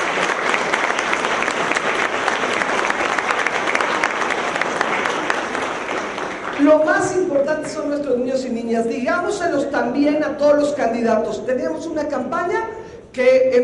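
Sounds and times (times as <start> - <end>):
crowd applause: 0.0 - 6.9
speech: 6.8 - 13.6.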